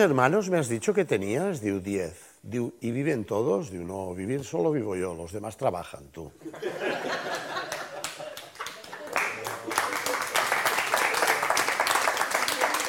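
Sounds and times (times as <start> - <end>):
speech: 0.0 - 7.5
laughter: 6.4 - 10.2
audience applause: 7.3 - 12.8.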